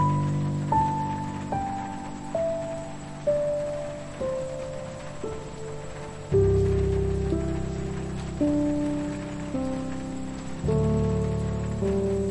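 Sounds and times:
night time piano playing: 0.0 - 12.2
night time rain: 0.0 - 12.2.

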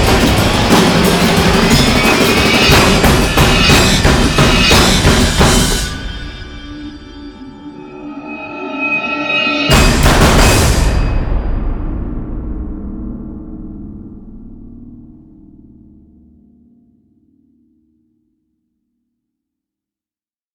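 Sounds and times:
drums: 0.0 - 7.5, 9.3 - 15.9.

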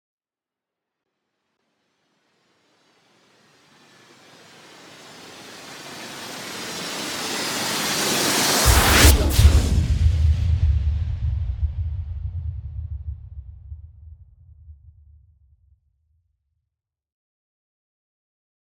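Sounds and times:
meteor storm: 4.7 - 12.5.

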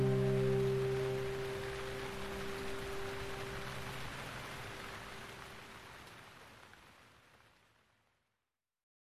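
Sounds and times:
piano: 0.0 - 5.3
rain: 0.0 - 8.4.

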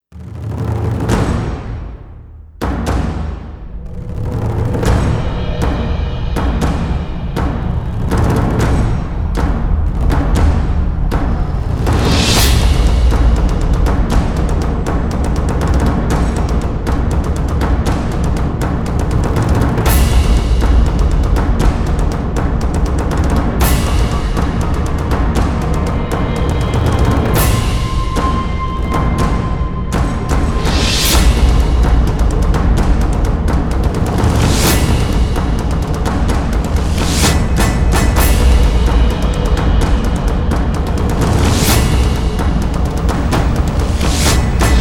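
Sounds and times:
percussion: 0.0 - 44.8.

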